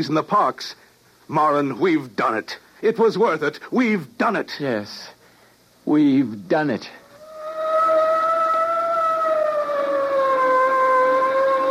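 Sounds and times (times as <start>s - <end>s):
speech: 0.0s - 5.2s, 5.8s - 7.0s
police boat siren wailing: 7.1s - 11.7s.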